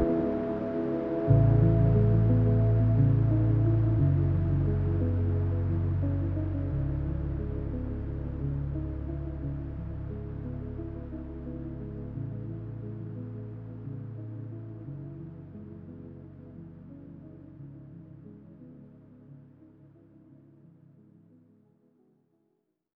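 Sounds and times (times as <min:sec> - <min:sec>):
slowed music with reverb: 0:00.0 - 0:16.2.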